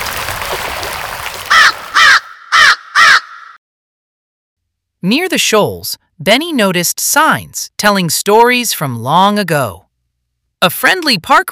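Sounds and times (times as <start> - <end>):
great blue heron giving harsh raspy calls: 1.5 - 3.6
speech: 5.0 - 9.8, 10.6 - 11.5.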